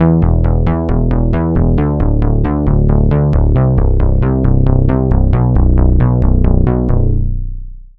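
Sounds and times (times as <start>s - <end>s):
bass: 0.0s - 7.9s.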